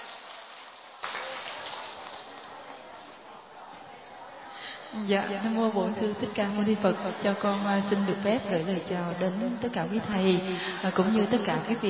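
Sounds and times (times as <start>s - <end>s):
audience applause: 0.0s - 3.2s
speech: 4.9s - 11.8s.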